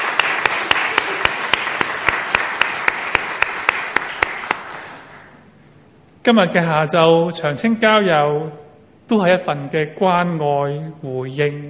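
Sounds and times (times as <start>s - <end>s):
audience applause: 0.0s - 5.3s
speech: 6.2s - 11.6s.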